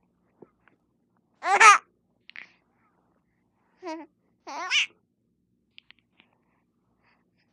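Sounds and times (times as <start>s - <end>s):
four month old baby girl laughing: 1.4s - 1.8s, 4.5s - 4.9s.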